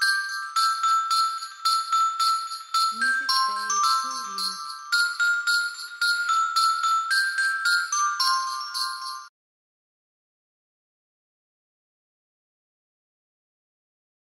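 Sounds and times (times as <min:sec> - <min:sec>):
Christmas song: 0:00.0 - 0:09.3.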